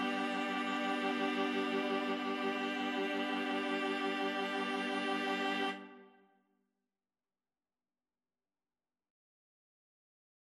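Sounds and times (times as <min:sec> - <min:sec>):
viola quartet playing: 0:00.0 - 0:06.1.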